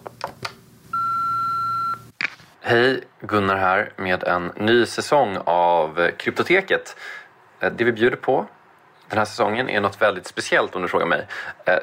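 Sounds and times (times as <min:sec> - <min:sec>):
voicemail beep signalling to leave a message: 0:01.0 - 0:02.1
speech: 0:02.7 - 0:11.8.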